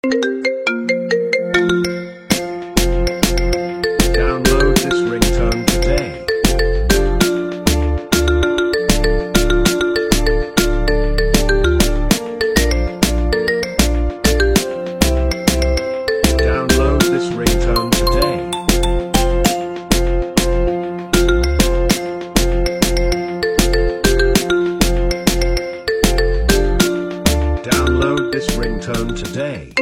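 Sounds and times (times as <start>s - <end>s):
marimba remix: 0.0s - 29.7s.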